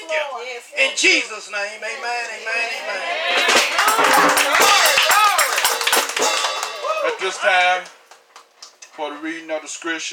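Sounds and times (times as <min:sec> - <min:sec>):
speech: 0:00.1 - 0:05.1, 0:07.0 - 0:08.0, 0:09.0 - 0:10.1
audience hand clapping: 0:03.4 - 0:08.8.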